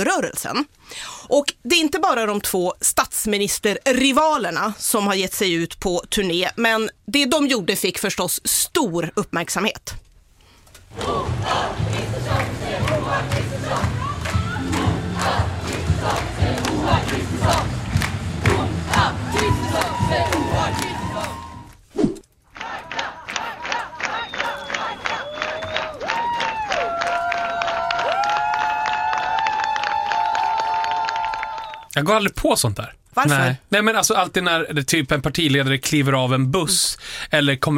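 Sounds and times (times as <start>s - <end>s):
speech: 0.0s - 10.0s, 10.9s - 14.0s, 32.0s - 37.7s
large crowd at a campaign rally cheering and shouting: 10.9s - 21.8s, 22.6s - 31.8s
steady rhythmic clapping: 10.9s - 21.8s, 22.5s - 31.9s
shrill whistles: 24.0s - 26.7s, 31.4s - 31.9s.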